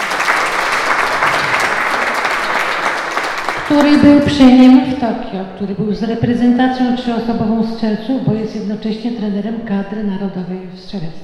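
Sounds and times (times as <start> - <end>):
audience applause: 0.0 - 4.6
speech: 3.7 - 11.2.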